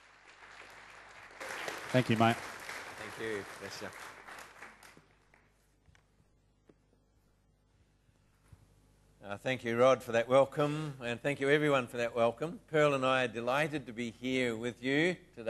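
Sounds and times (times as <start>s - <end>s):
audience applauding a welcomed speaker: 0.0s - 5.6s
speech: 1.9s - 2.5s, 3.2s - 4.2s, 9.3s - 15.4s.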